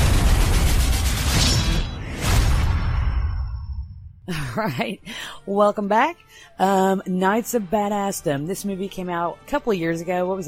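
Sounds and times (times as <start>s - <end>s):
lightning bolt spell blast: 0.0s - 4.0s
speech: 4.3s - 10.4s.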